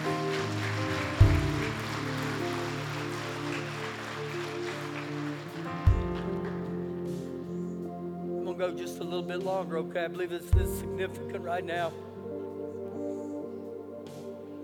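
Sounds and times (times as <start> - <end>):
audience clapping: 0.0 - 7.2
sustained musical chords: 0.0 - 14.6
speech: 8.6 - 12.1
deep booming thumps: 10.6 - 11.0.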